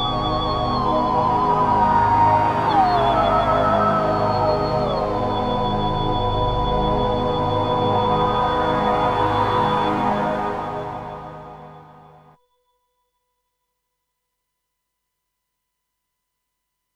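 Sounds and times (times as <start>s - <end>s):
opera orchestra: 0.0s - 12.2s.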